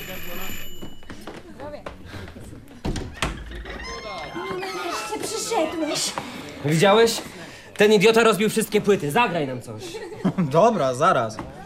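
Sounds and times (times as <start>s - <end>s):
telephone ringing: 0.0s - 1.5s
speech: 5.5s - 11.5s
laughter: 9.6s - 11.0s.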